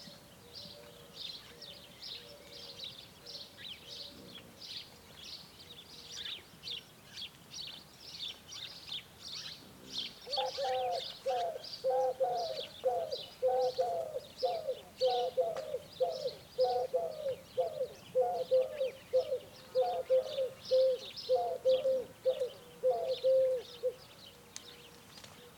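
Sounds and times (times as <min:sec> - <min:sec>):
high chirping songbirds: 0:00.0 - 0:25.5
common wood pigeon cooing: 0:09.7 - 0:24.0.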